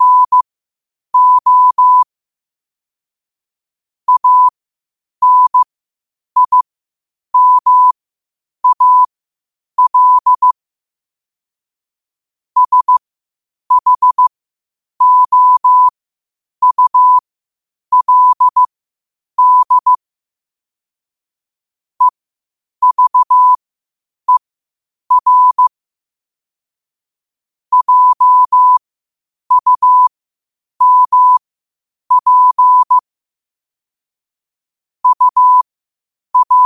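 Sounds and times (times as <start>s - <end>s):
morse code at 5 wpm: 0.0s - 0.4s, 1.2s - 2.1s, 4.1s - 4.5s, 5.2s - 5.7s, 6.4s - 6.6s, 7.4s - 8.0s, 8.6s - 9.1s, 9.8s - 10.5s, 12.6s - 13.0s, 13.7s - 14.3s, 15.0s - 15.9s, 16.6s - 17.2s, 17.9s - 18.7s, 19.4s - 20.0s, 22.8s - 23.6s, 25.1s - 25.7s, 27.7s - 28.8s, 29.5s - 30.1s, 30.8s - 31.4s, 32.1s - 33.0s, 35.0s - 35.6s, 36.4s - 36.6s.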